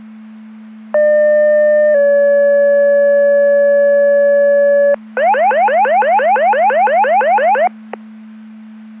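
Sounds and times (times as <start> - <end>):
siren: 1.0 - 7.7.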